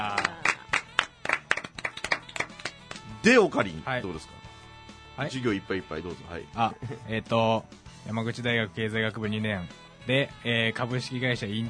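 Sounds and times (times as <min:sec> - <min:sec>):
sharp hand claps from a small group: 0:00.0 - 0:03.1
speech: 0:03.2 - 0:04.4, 0:05.2 - 0:11.6.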